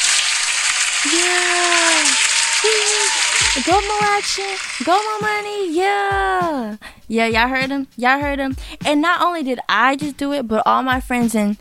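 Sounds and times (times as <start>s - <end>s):
applause: 0.0s - 4.9s
speech: 1.1s - 1.9s, 2.6s - 11.5s.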